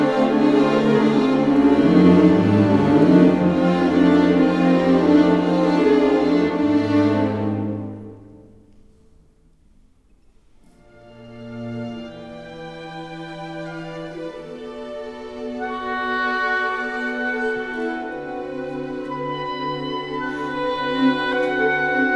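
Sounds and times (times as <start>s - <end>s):
oboe: 0.0s - 7.7s, 13.7s - 22.1s
strings: 0.0s - 9.0s, 10.7s - 22.1s.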